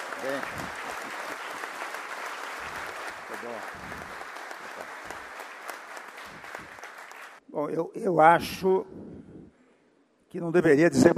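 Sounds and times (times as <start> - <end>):
audience applause: 0.0 - 7.4
speech: 0.2 - 1.2, 3.3 - 5.2, 7.6 - 9.1, 10.3 - 11.1.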